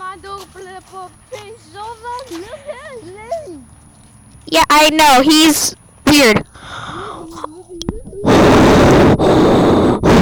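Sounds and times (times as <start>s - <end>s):
speech: 0.8s - 3.8s, 4.4s - 6.5s
heavy breathing into microphone: 6.5s - 7.5s, 8.1s - 10.2s.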